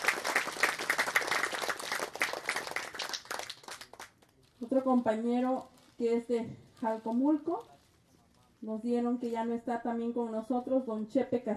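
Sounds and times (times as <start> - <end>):
crowd applauding: 0.0 - 4.2
speech: 4.7 - 7.7, 8.6 - 11.5.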